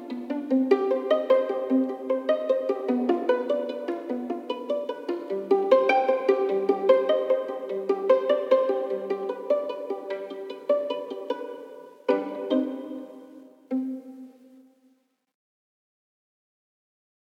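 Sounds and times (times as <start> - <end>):
classical violin pizzicato solo: 0.0 - 14.7.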